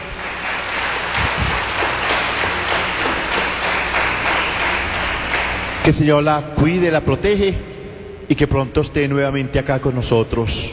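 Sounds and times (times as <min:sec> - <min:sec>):
audience applause: 0:00.0 - 0:05.9
speech: 0:05.8 - 0:07.7, 0:08.3 - 0:10.7.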